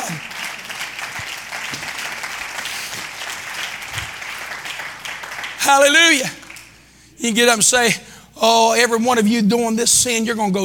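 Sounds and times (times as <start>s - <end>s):
crowd clapping: 0.0s - 7.0s
speech: 5.6s - 6.4s, 7.2s - 10.6s.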